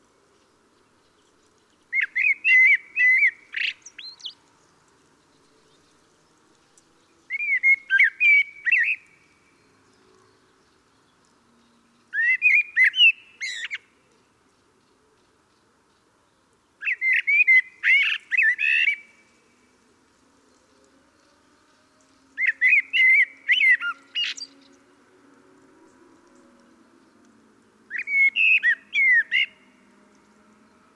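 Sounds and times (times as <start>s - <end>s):
common blackbird song: 0.3s - 30.9s.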